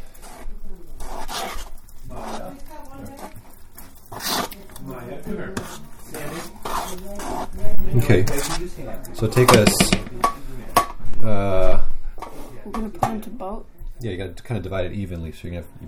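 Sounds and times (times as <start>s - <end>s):
batter pouring into baking pans: 0.0s - 10.9s
batter being mixed: 0.0s - 15.8s
speech: 7.9s - 8.6s, 9.2s - 10.0s, 14.0s - 15.8s.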